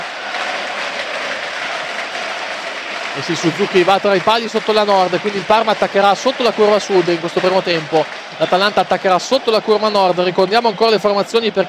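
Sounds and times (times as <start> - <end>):
stadium crowd applauding football players at a match: 0.0 - 11.6
speech: 3.2 - 11.6.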